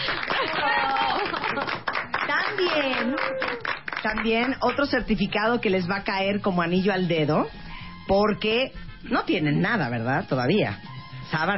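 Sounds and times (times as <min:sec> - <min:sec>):
audience clapping: 0:00.0 - 0:05.0
speech: 0:04.0 - 0:11.5.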